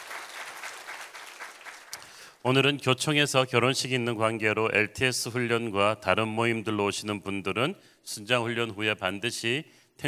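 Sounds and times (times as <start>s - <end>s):
congregation applause for the S Seocho community at an early-morning church prayer service: 0.0s - 2.3s
speech: 2.4s - 10.0s.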